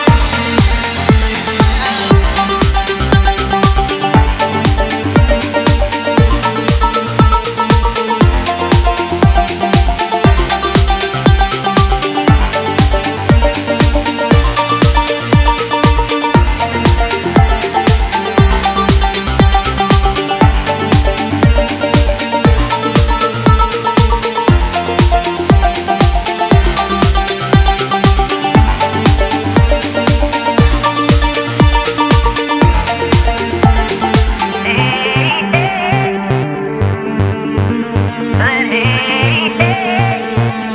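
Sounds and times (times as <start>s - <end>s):
trance music: 0.0s - 40.7s.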